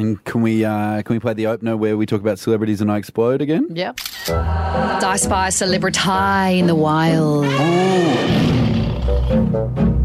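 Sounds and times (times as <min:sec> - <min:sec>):
speech: 0:00.0 - 0:08.6
lion roar sound effect: 0:07.4 - 0:09.5.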